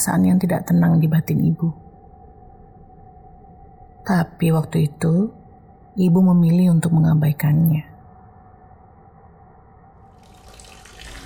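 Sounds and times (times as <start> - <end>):
speech: 0.0 - 1.9, 4.1 - 5.4, 6.0 - 7.9
running tap water while washing face: 10.2 - 11.2.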